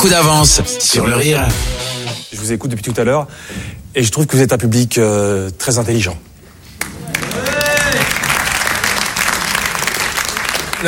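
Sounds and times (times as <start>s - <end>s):
speech: 0.0s - 6.3s
audience applause: 6.9s - 10.8s
person cheering: 7.1s - 8.2s.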